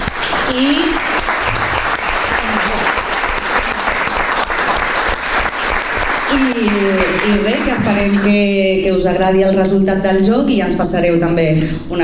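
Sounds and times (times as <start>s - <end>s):
audience applause: 0.0s - 8.4s
speech: 7.9s - 12.0s.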